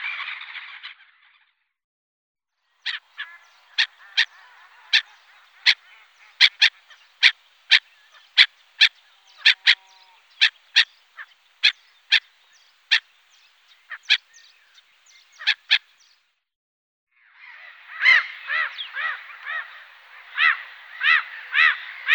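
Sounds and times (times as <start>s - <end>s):
black-headed gulls calling with rasping notes: 2.9s - 16.1s, 17.6s - 22.1s.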